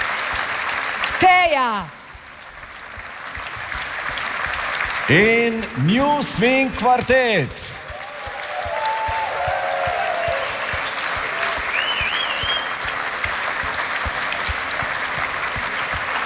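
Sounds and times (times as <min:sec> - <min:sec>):
concert audience applause: 0:00.0 - 0:16.2
speech: 0:01.2 - 0:02.0, 0:05.1 - 0:07.8
faint cheers: 0:07.6 - 0:12.8
whistle: 0:10.8 - 0:12.8.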